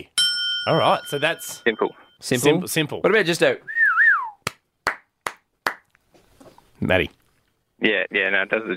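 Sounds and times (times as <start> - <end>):
speech: 0.7 - 3.8, 6.8 - 7.2, 7.8 - 8.7
falling whistle-like tone: 3.7 - 4.4
hand claps: 4.4 - 6.0.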